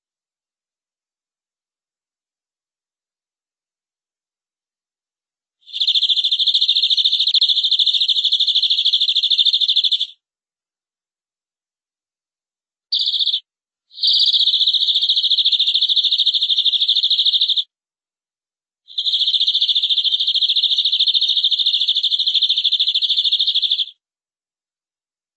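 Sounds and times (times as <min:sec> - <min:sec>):
canary trilling: 0:05.7 - 0:10.1, 0:12.9 - 0:13.4, 0:14.0 - 0:17.6, 0:19.0 - 0:23.9.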